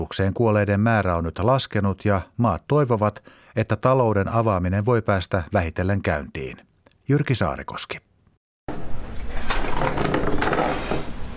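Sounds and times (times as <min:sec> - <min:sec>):
speech: 0:00.0 - 0:08.1
café chairs and tables clattering being set out: 0:09.0 - 0:11.3.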